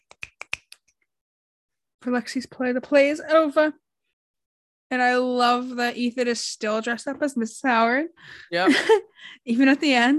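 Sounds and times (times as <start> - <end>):
finger snapping as applause: 0.0 - 0.9
speech: 2.0 - 3.8, 4.9 - 10.1
laughter: 8.6 - 9.1.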